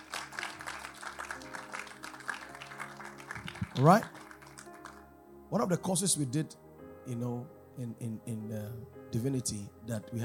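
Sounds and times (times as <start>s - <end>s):
audience clapping: 0.0s - 5.1s
speech: 3.8s - 4.2s, 5.5s - 10.2s.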